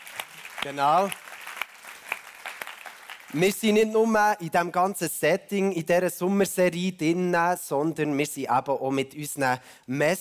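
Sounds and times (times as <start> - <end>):
audience applause: 0.0 - 3.4
speech: 0.6 - 1.2, 3.3 - 10.1.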